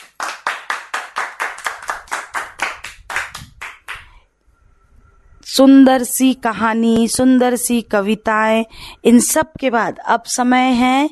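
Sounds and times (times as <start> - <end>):
loud sharp hand claps in a steady even rhythm: 0.0 - 4.2
speech: 5.6 - 11.1.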